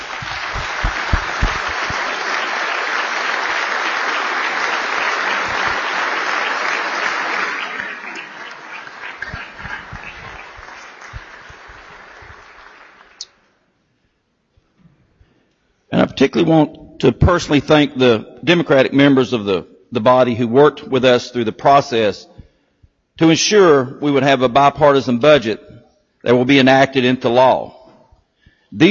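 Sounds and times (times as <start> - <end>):
round of applause: 0.0 - 13.4
speech: 16.2 - 22.3, 23.2 - 27.8, 28.7 - 28.9.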